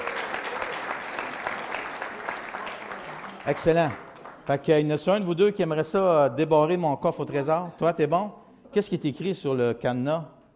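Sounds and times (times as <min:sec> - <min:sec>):
audience applause: 0:00.0 - 0:04.5
speech: 0:03.4 - 0:10.4.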